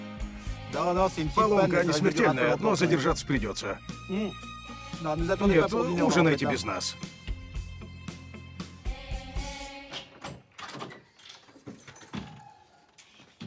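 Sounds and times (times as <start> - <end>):
speech: 0.8 - 7.1
house door lock and latch clicking and rattling: 10.0 - 12.4
keys jangling: 11.0 - 13.2.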